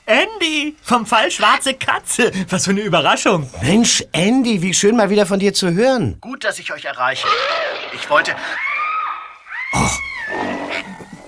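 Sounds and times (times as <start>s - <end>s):
speech: 0.3s - 8.7s, 9.7s - 10.5s
gorilla roaring and grunting: 7.2s - 11.2s.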